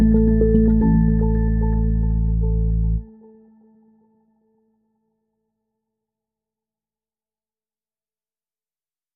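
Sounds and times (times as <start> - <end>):
ambient music without drums: 0.0 - 5.4.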